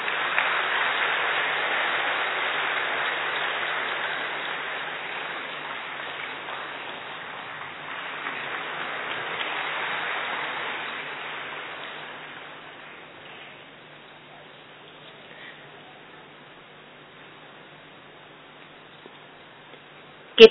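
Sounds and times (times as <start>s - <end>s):
audience applause: 0.0s - 13.6s.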